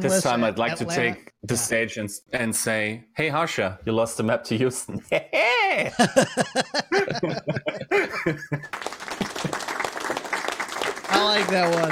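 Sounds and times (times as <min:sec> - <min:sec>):
speech: 0:00.0 - 0:09.0, 0:11.2 - 0:11.9
laughter: 0:04.9 - 0:09.8
applause: 0:08.6 - 0:11.9.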